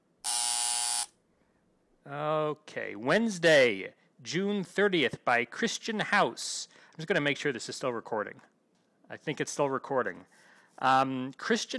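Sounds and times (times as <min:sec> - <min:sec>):
harsh electronic buzzer: 0:00.2 - 0:01.2
speech: 0:02.1 - 0:08.5, 0:09.1 - 0:11.7.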